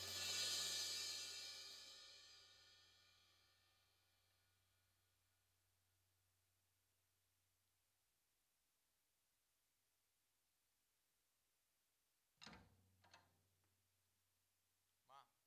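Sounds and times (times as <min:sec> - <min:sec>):
mid tom drum: 0:00.0 - 0:02.1.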